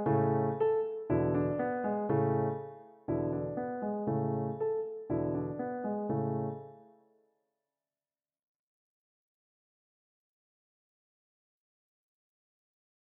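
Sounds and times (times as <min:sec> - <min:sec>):
art song for voice and piano: 0:00.0 - 0:06.8.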